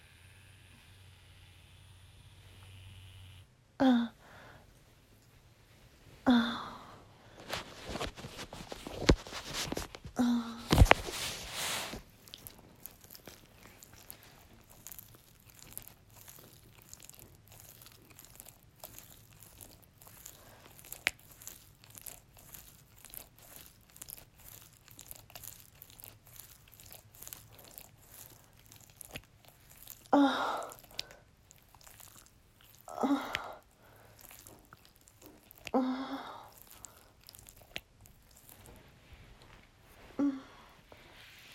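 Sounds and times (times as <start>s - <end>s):
person whimpering: 3.8s - 4.2s, 6.3s - 6.9s, 10.2s - 10.8s, 30.1s - 30.8s, 32.9s - 33.6s, 40.2s - 40.7s
wet noises: 7.3s - 40.6s.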